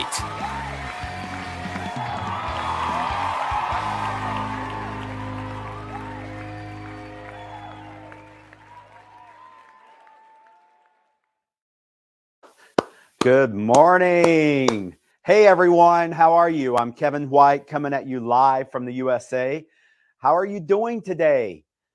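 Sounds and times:
audience whoops: 0.0 - 11.1
audience applause and cheering welcoming a show host: 0.0 - 11.4, 12.7 - 14.9
speech: 13.2 - 21.7.

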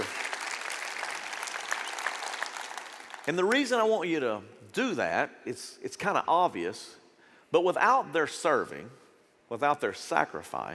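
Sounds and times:
audience applause: 0.0 - 3.3
speech: 3.2 - 10.7.

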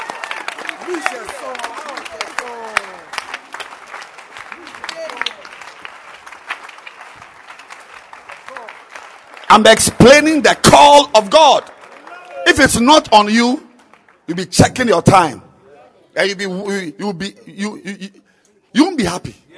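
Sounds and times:
audience clapping hands: 0.0 - 14.4
speech: 9.6 - 11.7, 12.5 - 13.6, 14.3 - 15.4, 16.2 - 19.4.

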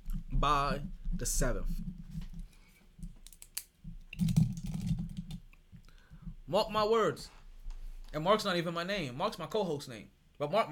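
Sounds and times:
speech: 0.4 - 1.9, 6.5 - 7.4, 8.1 - 10.7
computer keyboard typing: 4.2 - 5.4.

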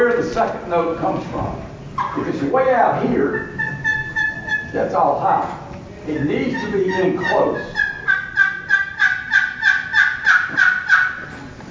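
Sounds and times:
speech: 0.2 - 3.6, 4.7 - 7.8
turkey call producing yelping notes: 2.0 - 4.9, 6.2 - 11.3.

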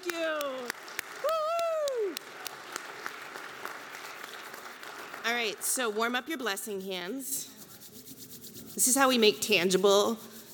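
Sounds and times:
audience clapping: 0.0 - 6.4
high whoop: 1.2 - 2.2
speech: 5.4 - 7.6, 8.8 - 10.3.

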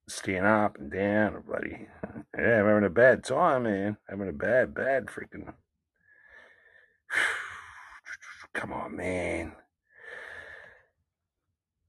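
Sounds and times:
speech: 0.2 - 5.6, 7.1 - 7.4, 8.5 - 9.6
man breathing heavily, struggling and out of breath: 6.1 - 7.9, 9.9 - 10.9.

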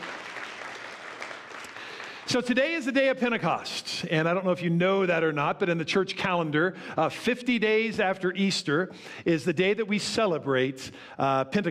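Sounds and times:
group clapping: 0.0 - 2.5
speech: 2.3 - 11.6.

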